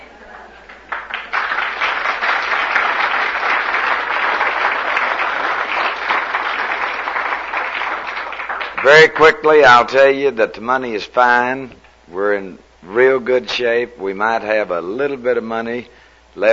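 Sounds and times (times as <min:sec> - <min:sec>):
audience applause: 0:00.0 - 0:09.7
speech: 0:08.8 - 0:16.5.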